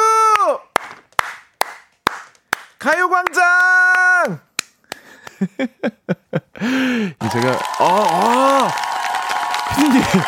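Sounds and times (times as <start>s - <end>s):
studio clapping: 0.3s - 5.4s, 7.2s - 10.2s
speech: 2.9s - 3.6s, 4.2s - 4.5s, 5.4s - 8.9s, 9.7s - 10.2s
laughter: 9.6s - 10.2s.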